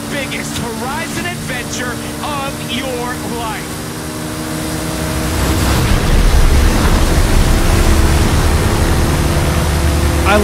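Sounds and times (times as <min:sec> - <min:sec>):
speech: 0:00.2 - 0:03.8
inbound cargo flight flying past: 0:02.6 - 0:10.4.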